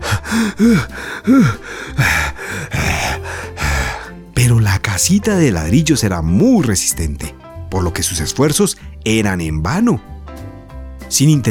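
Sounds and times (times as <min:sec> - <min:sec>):
person imitating a wolf blowing hard: 0:00.0 - 0:04.0
speech: 0:00.3 - 0:02.3, 0:05.0 - 0:10.1, 0:11.1 - 0:11.4.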